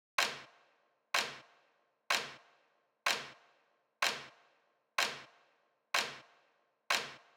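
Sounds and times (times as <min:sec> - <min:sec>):
nu disco clap: 0:00.2 - 0:00.5, 0:01.2 - 0:01.4, 0:02.1 - 0:02.4, 0:03.1 - 0:03.4, 0:04.0 - 0:04.3, 0:05.0 - 0:05.3, 0:06.0 - 0:06.2, 0:06.9 - 0:07.3.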